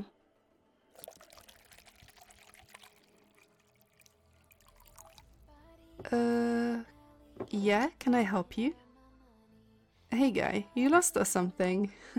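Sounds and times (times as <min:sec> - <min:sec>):
drink poured into a glass: 0:01.0 - 0:05.5
speech: 0:06.0 - 0:06.9, 0:07.5 - 0:08.8, 0:10.2 - 0:12.1.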